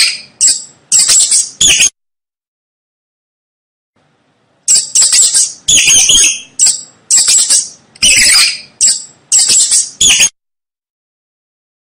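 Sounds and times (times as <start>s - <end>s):
mouse squeaking: 0.0s - 2.0s, 4.7s - 10.4s.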